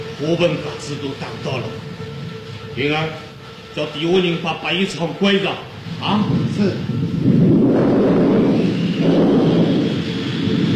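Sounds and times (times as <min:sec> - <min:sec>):
speech: 0:00.2 - 0:02.1, 0:02.8 - 0:07.1
thunder before a storm: 0:05.8 - 0:10.7.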